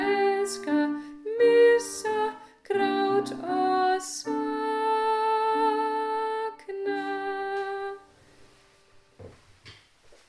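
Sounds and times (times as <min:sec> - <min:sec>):
person singing Icelandic song: 0:00.0 - 0:08.1.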